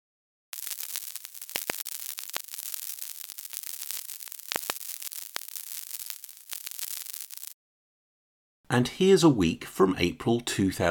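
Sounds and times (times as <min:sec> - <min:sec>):
sonified web server traffic hissing static: 0:00.5 - 0:07.6
sonified web server traffic pops and clicks: 0:00.5 - 0:07.6
speech: 0:08.7 - 0:10.8.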